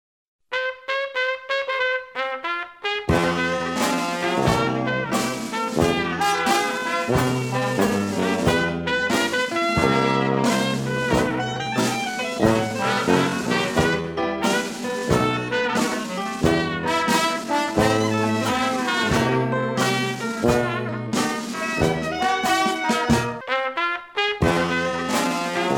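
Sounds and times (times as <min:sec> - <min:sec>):
blues music: 0:00.5 - 0:25.7.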